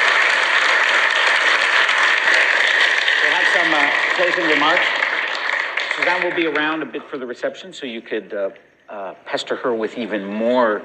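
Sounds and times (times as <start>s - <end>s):
audience applause: 0.0s - 6.9s
speech: 3.9s - 5.0s, 6.0s - 10.8s.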